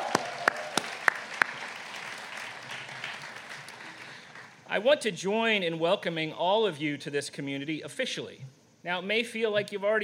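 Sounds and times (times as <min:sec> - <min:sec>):
sparse handclaps from an audience at a community welcome event: 0:00.0 - 0:04.5
hiss: 0:00.0 - 0:10.0
speech: 0:04.7 - 0:10.0.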